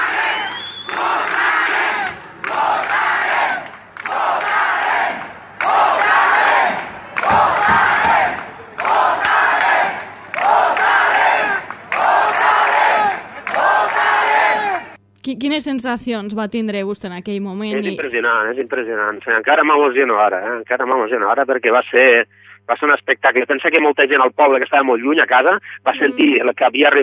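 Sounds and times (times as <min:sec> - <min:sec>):
large crowd chanting at police: 0:00.0 - 0:15.0
speech: 0:15.6 - 0:27.0.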